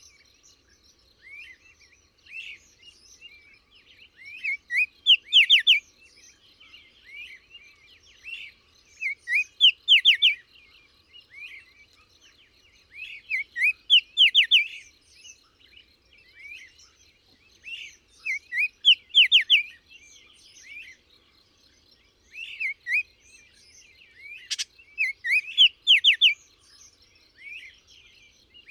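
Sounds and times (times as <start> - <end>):
bird song chirps and whistles: 0.0 - 28.7.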